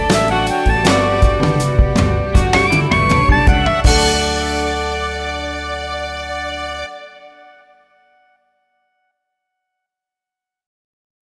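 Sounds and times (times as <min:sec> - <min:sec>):
melodic rock music: 0:00.0 - 0:07.1.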